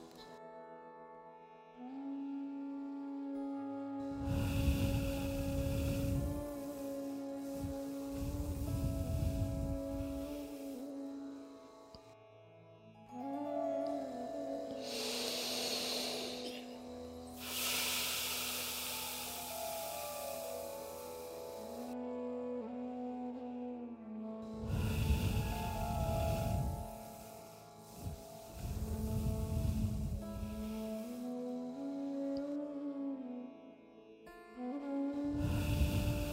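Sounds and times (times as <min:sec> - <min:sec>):
sustained musical drone: 0:01.8 - 0:36.3
slow deep breaths in through the nose and out through the mouth during Kundalini meditation: 0:04.0 - 0:12.0, 0:14.6 - 0:22.0, 0:24.5 - 0:31.3, 0:35.4 - 0:36.3.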